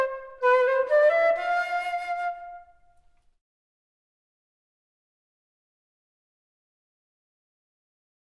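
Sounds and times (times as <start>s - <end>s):
flute performance: 0.0s - 3.0s.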